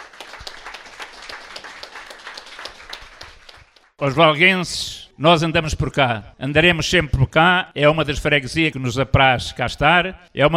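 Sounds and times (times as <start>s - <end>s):
audience applause: 0.0s - 3.9s
speech: 4.0s - 10.5s.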